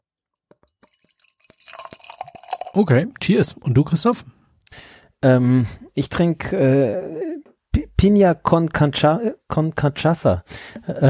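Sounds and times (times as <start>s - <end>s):
Brooklyn Defender IPA poured into a glass: 0.8s - 3.0s
speech: 2.8s - 4.4s, 5.2s - 7.2s, 8.0s - 11.0s
laughter: 10.9s - 11.0s.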